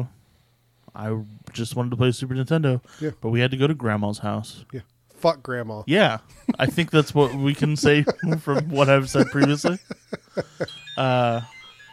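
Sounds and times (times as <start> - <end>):
speech: 1.0 - 11.6
laughter: 6.3 - 10.8
phone alarm going off: 9.2 - 11.9.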